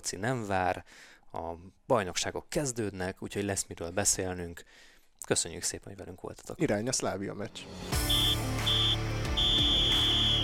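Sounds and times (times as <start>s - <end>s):
speech: 0.0s - 8.8s
referee's whistle blasts ending the match: 8.0s - 10.4s.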